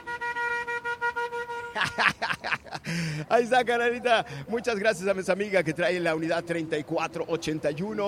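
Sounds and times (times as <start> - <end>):
vehicle horn honking: 0.0 - 2.0
laughter: 1.8 - 5.7
speech: 1.8 - 8.0.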